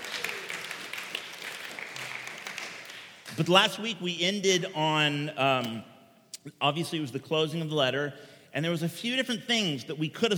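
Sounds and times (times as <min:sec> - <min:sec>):
audience applause: 0:00.0 - 0:03.2
speech: 0:03.4 - 0:10.3.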